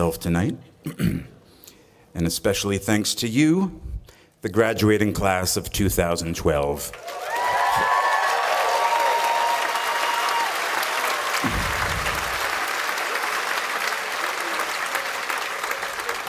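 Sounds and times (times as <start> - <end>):
speech: 0.0 - 1.4, 2.1 - 7.9
applause from a large audience: 6.9 - 16.2
faint whistles and cheers: 7.0 - 13.2.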